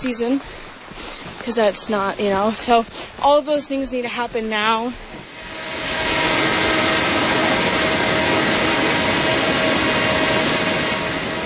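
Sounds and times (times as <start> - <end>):
speech: 0.0 - 5.3
swiftly flowing river: 0.0 - 11.4
drone flying overhead: 5.2 - 11.4.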